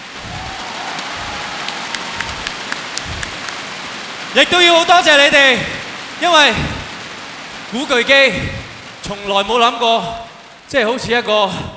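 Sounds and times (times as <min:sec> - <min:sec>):
large concert audience applauding: 0:00.0 - 0:07.0
speech: 0:04.4 - 0:06.8, 0:07.7 - 0:11.7.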